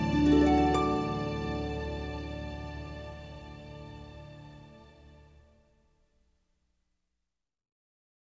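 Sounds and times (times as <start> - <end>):
harps: 0.0 - 5.4.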